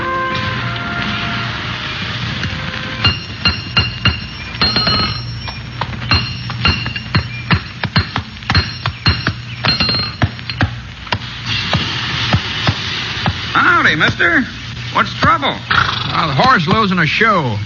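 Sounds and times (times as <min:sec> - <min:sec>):
low steady hum: 0:00.0 - 0:17.6
hammer blows on metal in blacksmith shop: 0:03.0 - 0:14.2
speech: 0:14.0 - 0:17.6.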